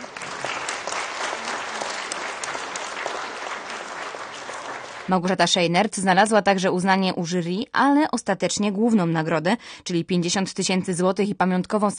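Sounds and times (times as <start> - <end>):
audience applause at award gala: 0.0 - 5.3
speech: 5.1 - 11.9.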